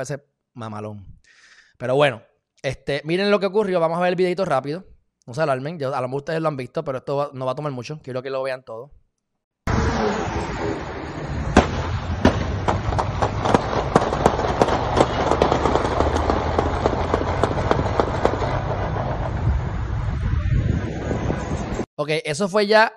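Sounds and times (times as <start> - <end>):
speech: 0.0 - 9.0, 22.0 - 22.9
steady wind-like roar: 9.7 - 21.9
rifle gunshots during police shootout: 11.6 - 18.7.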